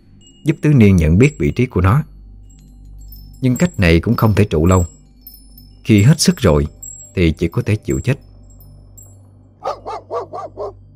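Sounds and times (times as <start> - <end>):
constant low hum: 0.0 - 10.9
speech: 0.4 - 2.1, 3.4 - 5.0, 5.8 - 8.3
mastiff barking: 9.6 - 10.8.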